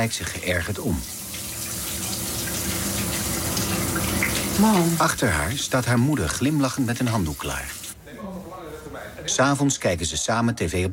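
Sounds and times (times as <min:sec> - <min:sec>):
speech: 0:00.0 - 0:01.2, 0:04.6 - 0:08.3, 0:09.1 - 0:10.9
shower water running: 0:00.0 - 0:08.0.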